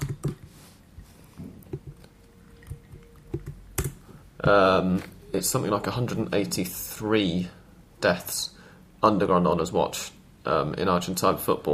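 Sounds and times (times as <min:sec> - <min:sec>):
computer keyboard typing: 0:00.0 - 0:00.5, 0:01.7 - 0:04.0
speech: 0:04.4 - 0:11.7.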